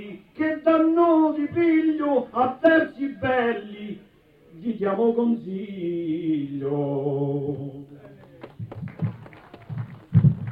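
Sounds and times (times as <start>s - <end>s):
speech: 0.4s - 7.9s
crowd applause: 8.1s - 10.5s.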